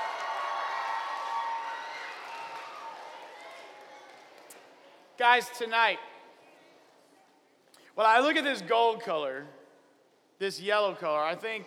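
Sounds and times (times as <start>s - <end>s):
round of applause: 0.0s - 5.0s
speech: 5.2s - 6.1s, 8.0s - 9.6s, 10.4s - 11.6s.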